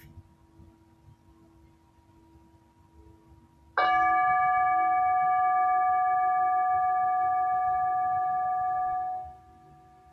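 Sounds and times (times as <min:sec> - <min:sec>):
faint low hum: 0:00.0 - 0:10.1
Tibetan singing bowl struck and ringing: 0:03.8 - 0:10.1.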